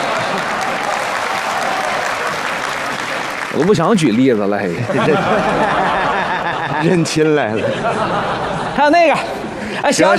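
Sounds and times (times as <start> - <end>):
audience applause: 0.0 - 6.6
speech: 3.6 - 6.0, 6.7 - 10.1
laughter: 4.1 - 10.1.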